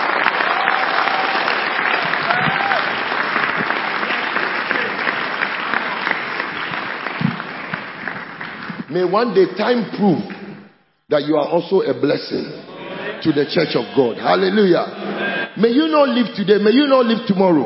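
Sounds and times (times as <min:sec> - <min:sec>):
audience clapping: 0:00.0 - 0:10.6
speech: 0:09.0 - 0:10.3, 0:11.1 - 0:17.6.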